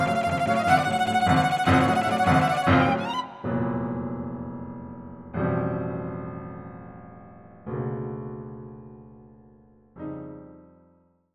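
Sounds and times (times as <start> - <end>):
clarinet in a trio: 0.0 - 3.6
cello in a trio: 0.0 - 4.1
piano in a trio: 0.0 - 11.3.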